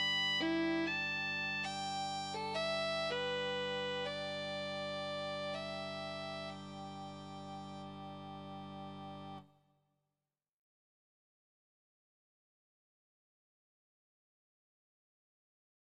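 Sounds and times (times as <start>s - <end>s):
fiddle playing: 0.0s - 9.4s.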